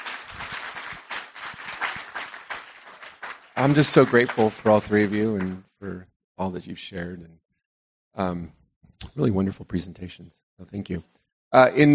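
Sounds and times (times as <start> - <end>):
room of people applauding three guests: 0.0 - 5.6
speech: 3.6 - 7.4, 8.2 - 11.9.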